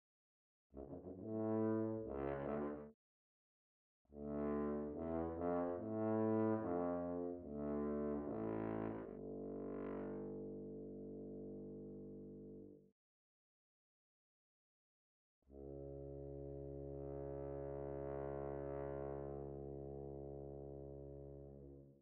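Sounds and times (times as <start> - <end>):
tuba: 0.8 - 3.0, 4.1 - 12.9, 15.5 - 22.0.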